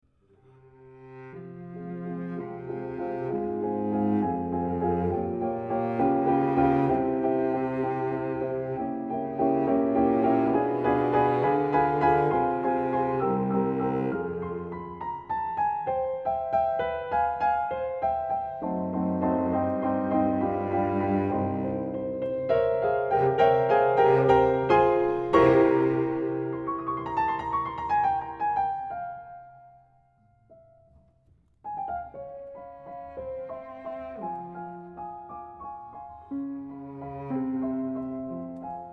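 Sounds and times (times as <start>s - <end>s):
cello and piano variations: 0.3s - 38.9s.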